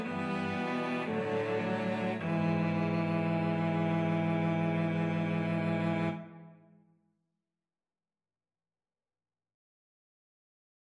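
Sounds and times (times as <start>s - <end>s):
cello quartet: 0.0s - 6.6s.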